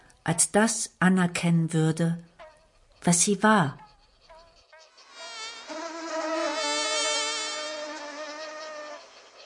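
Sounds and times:
speech: 0:00.2 - 0:02.3, 0:03.0 - 0:03.8
giant red crane fly buzzing: 0:03.8 - 0:09.4.

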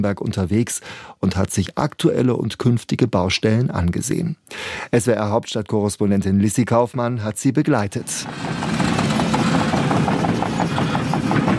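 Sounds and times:
speech: 0:00.0 - 0:08.7
excavators rolling at a construction site: 0:08.0 - 0:11.5.

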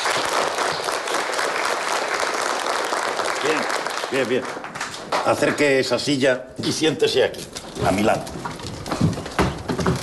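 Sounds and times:
applause welcoming a new classmate: 0:00.0 - 0:05.6
speech: 0:03.4 - 0:09.0.

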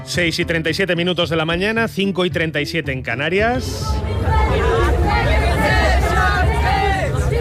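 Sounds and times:
speech: 0:00.1 - 0:05.3
street protest crowd in Berlin against rising housing prices: 0:03.4 - 0:07.3.

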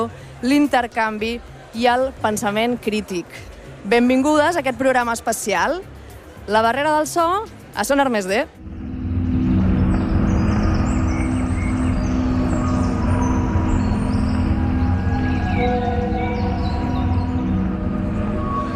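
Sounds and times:
speech: 0:00.0 - 0:08.7
loud steady low rumble: 0:08.6 - 0:18.7
birds chirping and trilling: 0:09.2 - 0:18.7.

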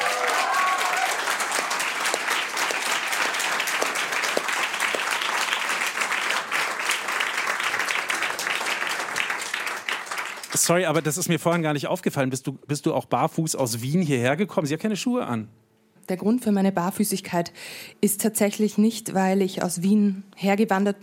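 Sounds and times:
audience applause: 0:00.0 - 0:11.2
speech: 0:10.7 - 0:21.0.

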